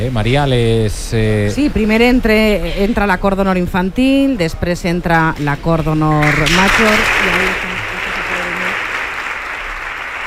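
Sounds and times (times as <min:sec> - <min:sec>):
speech: 0:00.0 - 0:07.7
audience applause at a festive civic reception in Valencia: 0:06.2 - 0:10.2.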